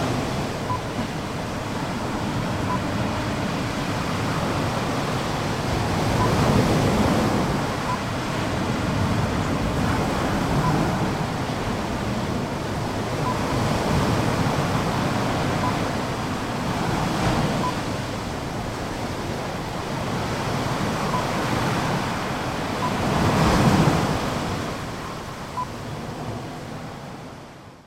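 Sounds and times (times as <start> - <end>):
waves at Lovina Beach: 0.0 - 27.8
wind at Lovina Beach: 0.0 - 27.8.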